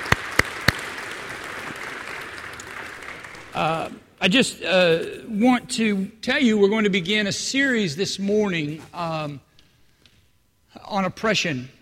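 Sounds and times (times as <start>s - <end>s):
audience applause for mothers: 0.0s - 3.9s
speech: 3.6s - 9.5s, 10.9s - 11.7s.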